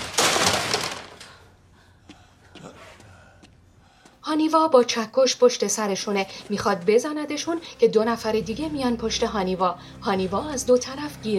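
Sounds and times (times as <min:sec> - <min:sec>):
cassette player smashed with a sword: 0:00.0 - 0:01.3
speech: 0:04.3 - 0:11.3.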